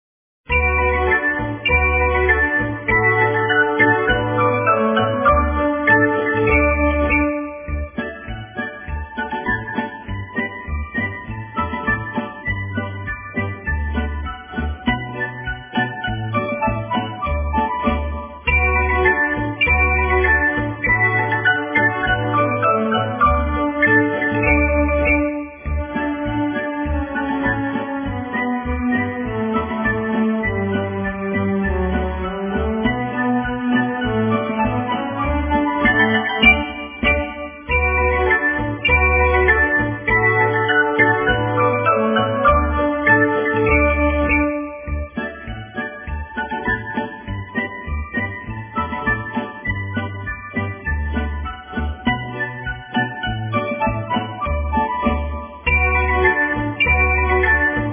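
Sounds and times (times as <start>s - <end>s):
background music: 0.5s - 57.9s.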